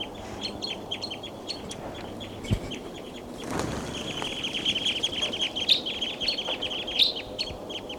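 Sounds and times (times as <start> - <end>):
flock of birds chirping: 0.0 - 7.9
bird wings whooshing as birds take off: 3.3 - 5.6.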